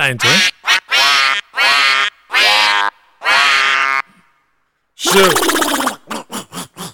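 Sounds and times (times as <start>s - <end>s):
speech: 0.0s - 0.6s
duck quacking: 0.2s - 4.1s, 5.1s - 6.0s.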